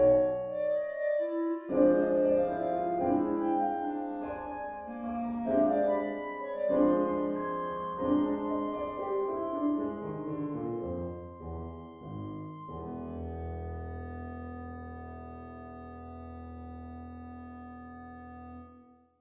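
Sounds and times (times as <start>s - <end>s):
clarinet playing a slow blues piece: 0.0s - 19.0s
piano playing a slow blues piece: 0.0s - 19.1s.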